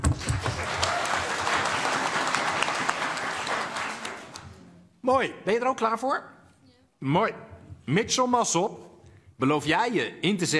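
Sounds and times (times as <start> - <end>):
audience clapping: 0.0 - 4.6
speech: 5.1 - 6.4, 7.0 - 10.5.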